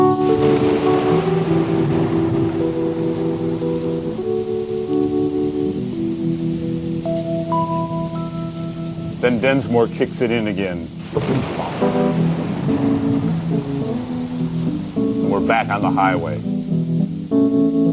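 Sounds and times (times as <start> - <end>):
thunder: 0.0 - 4.2, 11.0 - 15.3
rain: 0.0 - 17.9
speech: 9.3 - 11.8, 15.4 - 16.5.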